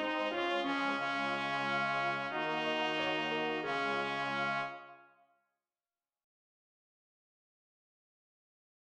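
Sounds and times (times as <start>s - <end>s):
MIDI music: 0.0s - 5.0s.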